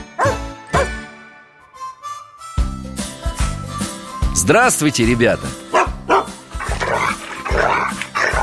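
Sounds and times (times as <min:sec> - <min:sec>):
dog barking: 0:00.2 - 0:00.9, 0:05.7 - 0:08.4
speech: 0:04.4 - 0:05.6.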